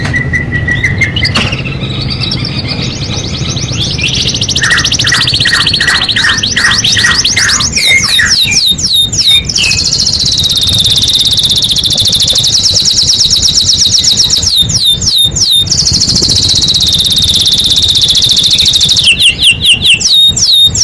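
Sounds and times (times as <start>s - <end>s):
domestic canary song with sustained rolling trill and whistled phrases: 0.1s - 20.8s.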